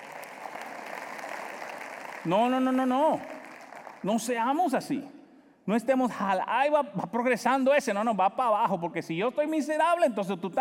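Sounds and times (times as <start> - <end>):
audience applause: 0.0 - 4.3
speech: 2.2 - 3.3, 4.0 - 10.5.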